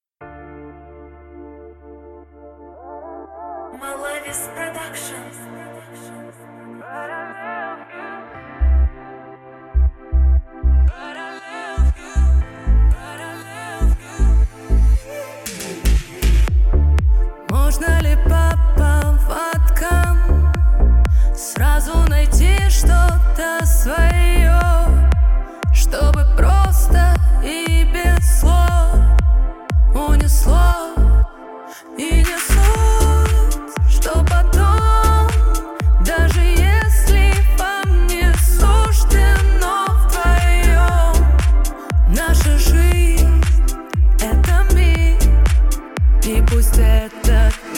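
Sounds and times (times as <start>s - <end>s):
bass: 8.4s - 11.2s, 11.8s - 31.4s, 32.0s - 47.7s.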